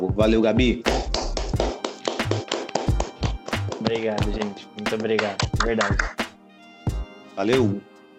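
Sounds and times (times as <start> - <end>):
speech: 0.2 - 1.7, 3.9 - 6.2, 7.4 - 7.9
small group applauding: 1.1 - 6.2.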